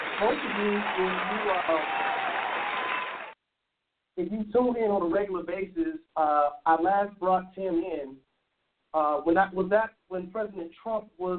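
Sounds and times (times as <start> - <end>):
audience applause welcoming a guest at a live talk event: 0.0 - 3.4
speech: 0.2 - 2.0, 4.2 - 8.3, 8.9 - 11.3.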